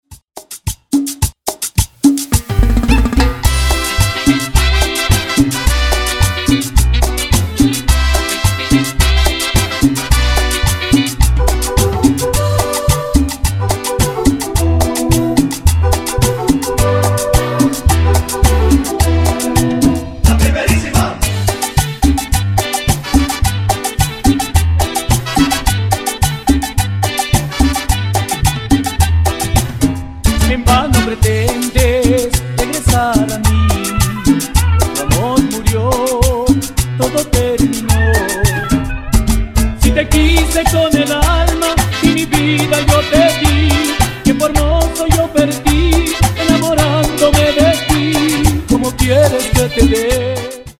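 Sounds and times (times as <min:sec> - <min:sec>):
Ecuadorian cumbia intro and outro music: 0:00.0 - 0:50.7.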